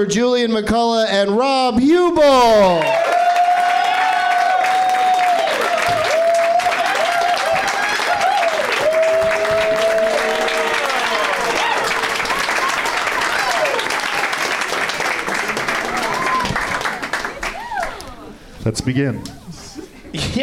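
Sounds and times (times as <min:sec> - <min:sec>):
speech: 0:00.0 - 0:03.2, 0:18.6 - 0:19.4
cheers and whoops: 0:02.6 - 0:14.3, 0:15.8 - 0:18.2
audience applause: 0:02.7 - 0:18.4.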